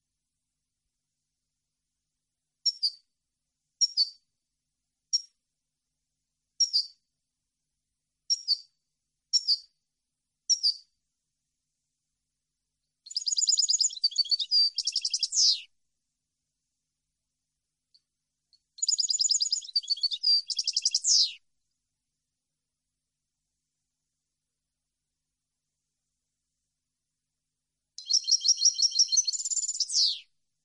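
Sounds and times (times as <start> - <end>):
European goldfinch twittering song: 13.1 - 15.6, 18.8 - 21.4, 28.0 - 30.3.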